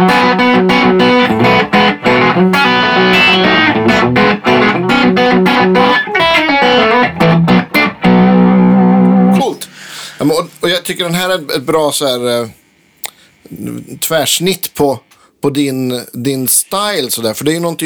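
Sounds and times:
effects-laden electric guitar riff with pull-offs and open ringing strings: 0:00.0 - 0:10.6
speech: 0:10.9 - 0:12.6, 0:13.4 - 0:17.8.

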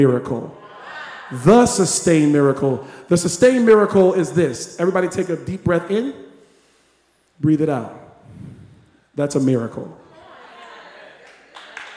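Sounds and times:
speech: 0:00.0 - 0:00.6, 0:01.3 - 0:06.2, 0:07.4 - 0:08.6, 0:09.2 - 0:10.0
sparse half-hearted audience clapping: 0:11.0 - 0:11.9.

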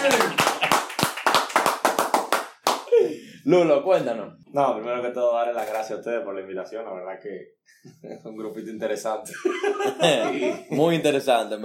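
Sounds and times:
small group applauding: 0:00.0 - 0:03.0
speech: 0:03.4 - 0:11.6
laughter: 0:09.2 - 0:10.8.

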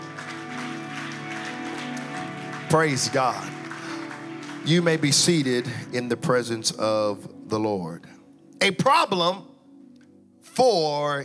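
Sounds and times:
audience clapping hands: 0:00.0 - 0:06.1
speech: 0:02.7 - 0:03.6, 0:04.6 - 0:09.5, 0:10.5 - 0:11.2.

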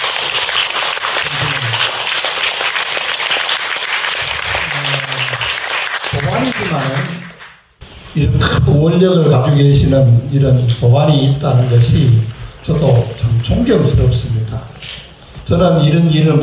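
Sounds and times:
audience applause: 0:00.0 - 0:07.6
speech: 0:08.2 - 0:16.4.

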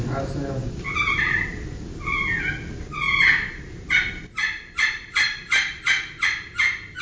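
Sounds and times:
slate turkey call yelps worked with a striker: 0:00.8 - 0:06.9.

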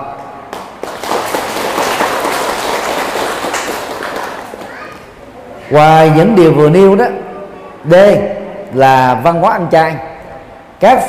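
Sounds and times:
audience applause: 0:00.6 - 0:04.9
speech: 0:05.7 - 0:07.2, 0:07.8 - 0:10.1, 0:10.8 - 0:11.0.

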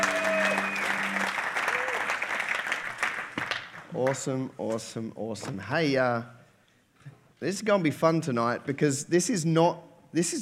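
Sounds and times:
audience applause: 0:00.0 - 0:03.9
speech: 0:03.9 - 0:06.4, 0:07.4 - 0:10.3.

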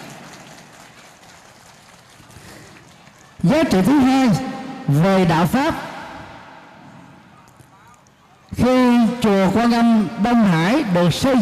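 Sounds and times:
audience applauding: 0:00.0 - 0:03.4
speech: 0:03.4 - 0:05.9, 0:09.5 - 0:11.4.

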